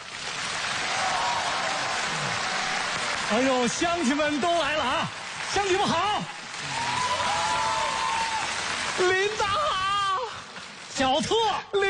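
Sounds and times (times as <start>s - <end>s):
applause greeting a visiting official: 0.0s - 11.4s
speech: 3.3s - 7.0s, 9.0s - 9.9s, 11.0s - 11.8s.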